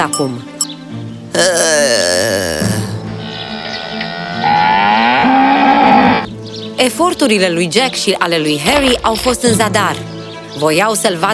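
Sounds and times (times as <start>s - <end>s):
speech: 0.0s - 2.6s, 6.8s - 11.3s
cow mooing: 2.6s - 6.3s.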